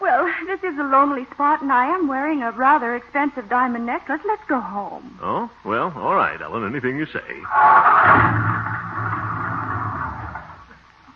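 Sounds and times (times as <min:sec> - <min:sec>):
speech: 0:00.6 - 0:08.8
car engine dying after running out of gas: 0:07.5 - 0:10.8.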